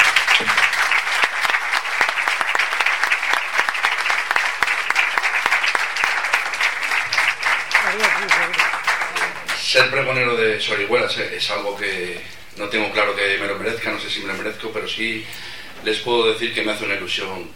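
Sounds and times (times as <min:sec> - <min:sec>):
audience applause: 0:00.0 - 0:10.0
speech: 0:09.8 - 0:17.5.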